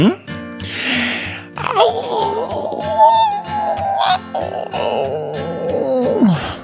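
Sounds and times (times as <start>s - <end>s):
voices imitating wolves howling: 1.6s - 6.6s.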